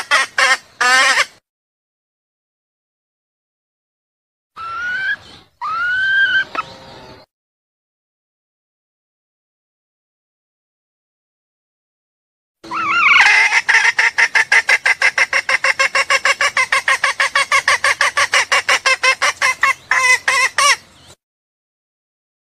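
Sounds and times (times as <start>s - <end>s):
junglefowl clucking: 0.0s - 1.3s, 4.6s - 6.7s, 12.7s - 20.8s.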